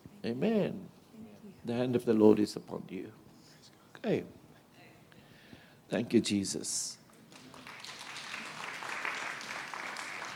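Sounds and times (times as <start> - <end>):
speech: 0.2 - 0.9, 1.6 - 3.2, 4.0 - 4.4, 5.9 - 7.0
audience applauding and cheering: 7.3 - 10.3.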